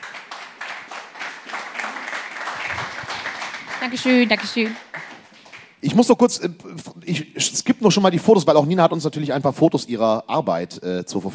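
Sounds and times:
applause: 0.0 - 5.8
speech: 3.8 - 4.9, 5.8 - 11.3.

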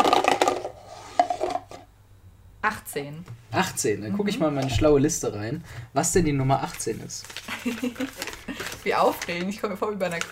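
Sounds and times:
dice rolling on a tabletop: 0.0 - 1.8
speech: 2.9 - 10.2
laughter: 7.5 - 8.7.

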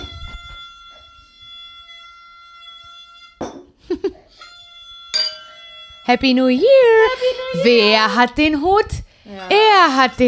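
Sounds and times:
party horn being blown: 0.0 - 3.4, 4.5 - 7.5
speech: 6.1 - 10.2.

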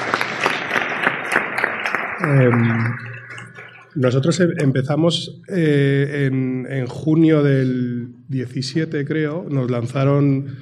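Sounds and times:
audience applause: 0.0 - 4.6
speech: 2.2 - 3.0, 4.0 - 10.5.

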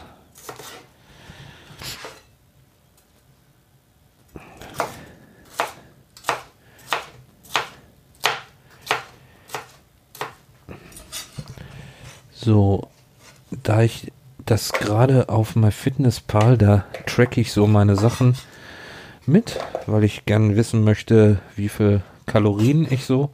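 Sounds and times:
knife dicing a bell pepper: 4.6 - 10.4
speech: 12.5 - 12.9, 13.6 - 18.5, 19.3 - 23.3.

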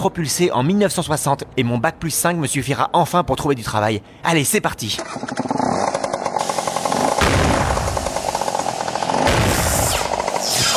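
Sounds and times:
speech: 0.0 - 5.7
small scooter engine revving then sputtering out: 5.0 - 10.7.

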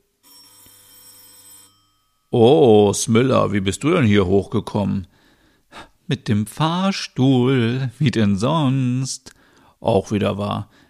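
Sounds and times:
doorbell ringing: 0.2 - 2.5
speech: 2.3 - 5.1, 6.1 - 10.8.

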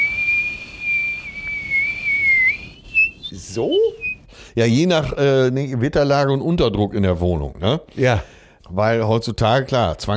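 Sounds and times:
person whistling imitating wind through a door gap: 0.0 - 4.3
speech: 3.6 - 10.1.

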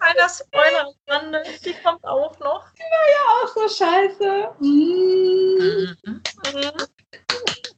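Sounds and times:
speech: 0.2 - 6.9
hand claps: 6.2 - 7.7.

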